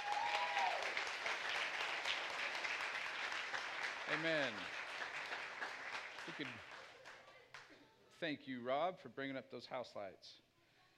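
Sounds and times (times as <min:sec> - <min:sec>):
audience applause: 0:00.0 - 0:07.4
speech: 0:04.1 - 0:04.8, 0:06.3 - 0:06.7, 0:08.2 - 0:10.5.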